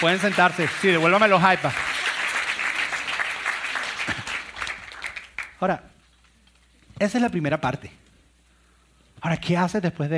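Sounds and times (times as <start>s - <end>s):
speech: 0.0s - 1.9s, 5.6s - 5.9s, 7.0s - 8.0s, 9.2s - 10.1s
audience applause: 0.0s - 5.6s.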